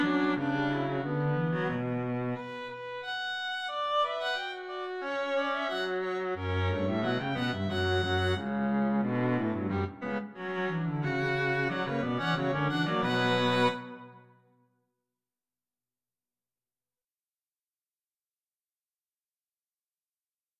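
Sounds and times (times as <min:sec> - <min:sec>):
string quartet: 0:00.0 - 0:14.2.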